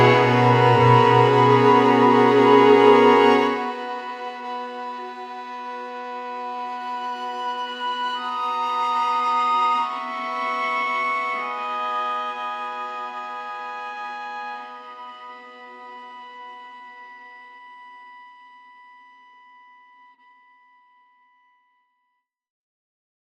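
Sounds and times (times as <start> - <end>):
violin: 0.0 - 18.0.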